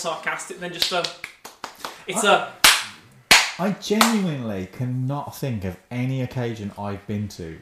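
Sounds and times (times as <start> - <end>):
speech: 0.0 - 1.3, 2.1 - 2.6, 3.6 - 7.6
loud slow hand clap: 0.8 - 2.0, 2.6 - 4.2.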